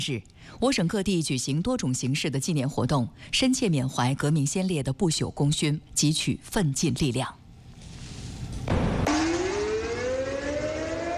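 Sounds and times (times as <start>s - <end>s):
speech: 0.0s - 7.4s
air raid siren test across the province: 8.7s - 11.1s.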